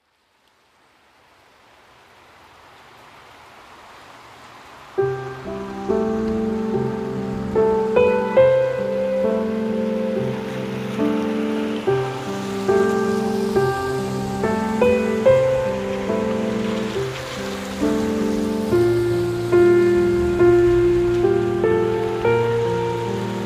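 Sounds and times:
rain: 0.0 - 23.4
piano: 4.8 - 23.4.

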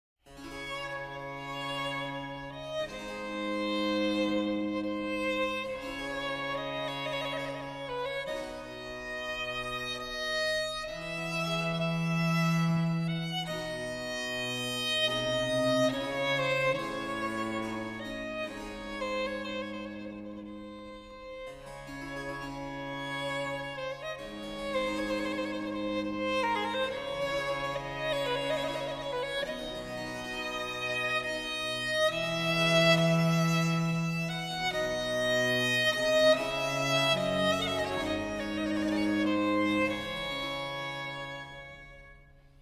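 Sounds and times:
violin sonata in D minor: 0.3 - 42.5.

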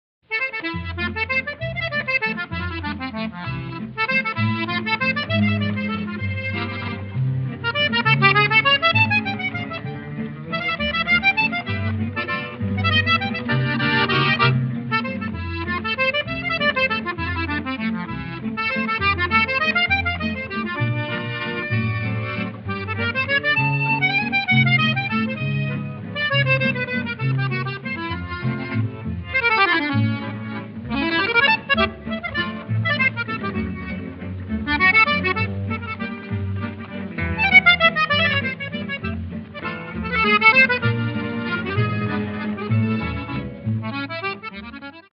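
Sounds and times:
swing waltz music: 0.3 - 45.1.

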